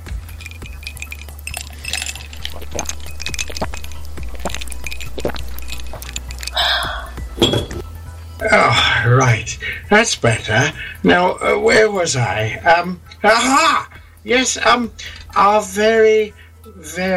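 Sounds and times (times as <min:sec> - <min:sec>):
steady low hum: 0:00.0 - 0:16.8
ceramic mug clinks and knocks: 0:00.2 - 0:06.6, 0:07.3 - 0:07.9
speech: 0:02.8 - 0:03.0, 0:08.5 - 0:17.1.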